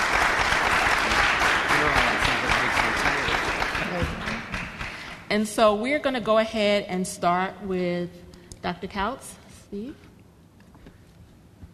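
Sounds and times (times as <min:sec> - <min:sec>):
audience applause: 0:00.0 - 0:05.3
speech: 0:05.3 - 0:10.1.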